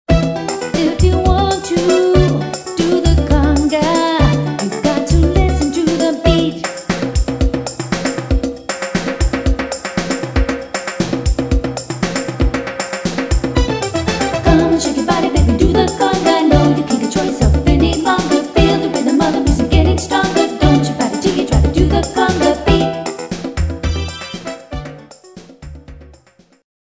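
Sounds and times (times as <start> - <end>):
conga drum: 0.1 - 26.6.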